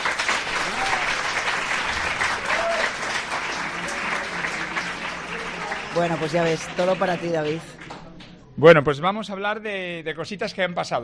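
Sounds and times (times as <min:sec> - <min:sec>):
live audience applause: 0:00.0 - 0:08.4
speech: 0:06.0 - 0:07.8, 0:08.6 - 0:11.0.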